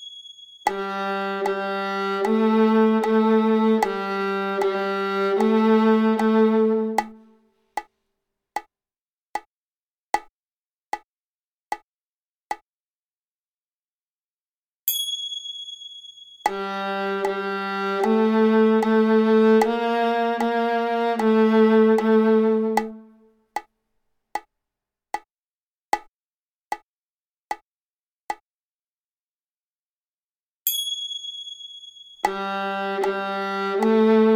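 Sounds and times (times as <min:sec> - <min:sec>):
viola G string played: 0:00.7 - 0:07.3, 0:16.5 - 0:23.2, 0:32.3 - 0:34.3.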